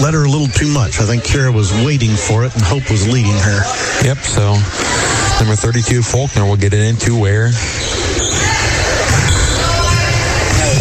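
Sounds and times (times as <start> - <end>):
crowd noise: 0.0 - 10.7
speech: 0.1 - 8.8
basketball dribbled during a women's game: 7.6 - 10.7.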